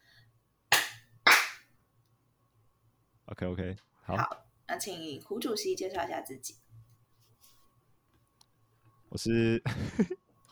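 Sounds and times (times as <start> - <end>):
hands clapping: 0.7 - 1.6
speech: 3.3 - 6.6, 9.1 - 10.2.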